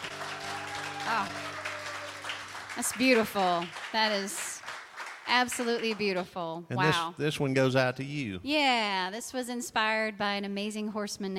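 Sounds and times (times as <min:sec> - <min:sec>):
crowd applauding: 0:00.0 - 0:06.3
speech: 0:01.1 - 0:01.5, 0:02.8 - 0:04.5, 0:05.3 - 0:11.3.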